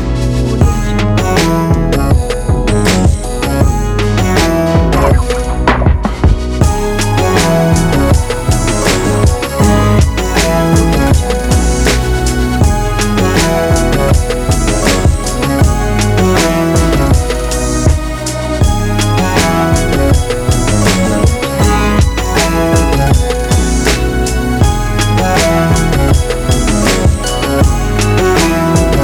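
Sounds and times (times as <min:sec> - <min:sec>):
electronic pop music: 0:00.0 - 0:29.0.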